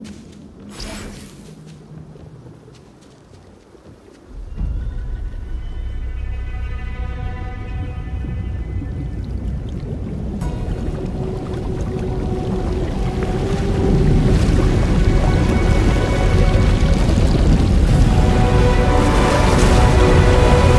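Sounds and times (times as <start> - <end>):
dramatic positive music: 4.5 - 9.5, 10.4 - 20.7.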